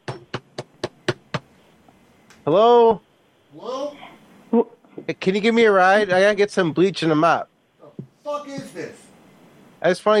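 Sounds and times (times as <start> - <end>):
knocking on a door: 0.0 - 1.5
speech: 2.4 - 7.5, 9.8 - 10.1.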